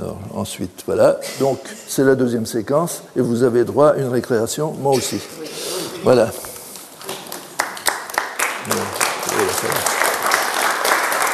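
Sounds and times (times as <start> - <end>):
speech: 0.2 - 6.5
audience applause: 7.0 - 11.3.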